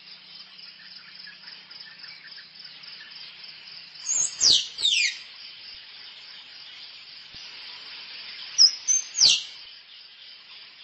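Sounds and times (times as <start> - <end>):
squirrel chirping: 4.1 - 5.2, 8.6 - 9.5.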